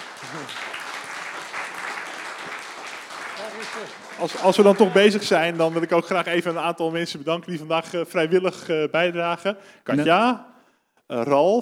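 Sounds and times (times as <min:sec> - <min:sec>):
audience applause: 0:00.0 - 0:06.8
speech: 0:00.3 - 0:00.8, 0:03.6 - 0:10.5, 0:11.1 - 0:11.6.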